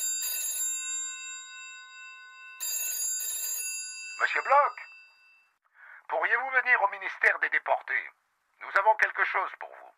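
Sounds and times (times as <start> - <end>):
telephone bell ringing: 0.0 - 5.6
speech: 4.2 - 4.9, 6.1 - 9.8.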